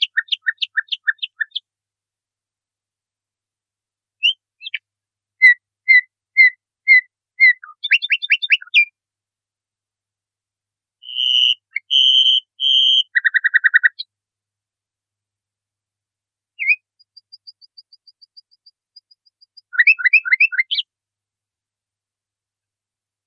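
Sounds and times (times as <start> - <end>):
nightingale singing varied phrases: 0.0 - 1.6, 4.2 - 4.8, 5.4 - 8.9, 11.0 - 14.1, 16.6 - 20.9.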